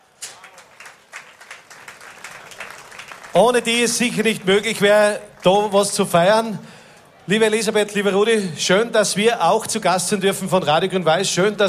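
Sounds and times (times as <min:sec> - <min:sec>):
audience applause: 0:00.2 - 0:06.2
speech: 0:03.4 - 0:06.7, 0:07.3 - 0:11.6.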